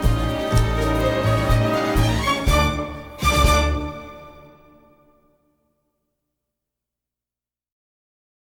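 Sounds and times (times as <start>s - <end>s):
tango music: 0.0s - 5.0s.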